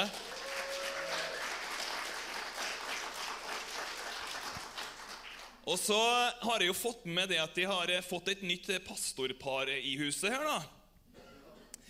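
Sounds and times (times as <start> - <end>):
audience applause: 0.0 - 5.6
speech: 5.7 - 10.8.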